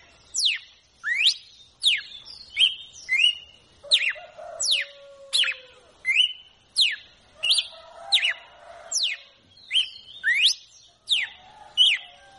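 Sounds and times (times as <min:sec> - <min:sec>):
red-cowled cardinal song: 0:00.4 - 0:08.4, 0:09.0 - 0:12.2.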